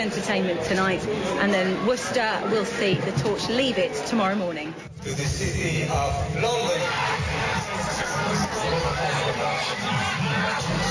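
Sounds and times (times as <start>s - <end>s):
crowd of about 10,000 at New Road in Worcester chattering: 0.0s - 10.9s
speech: 0.0s - 10.9s.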